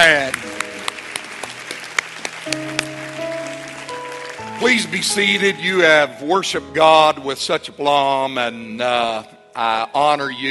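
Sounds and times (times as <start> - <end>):
audience clapping: 0.0 - 5.9
sustained low keyboard chords: 0.0 - 10.5
speech: 4.6 - 10.5.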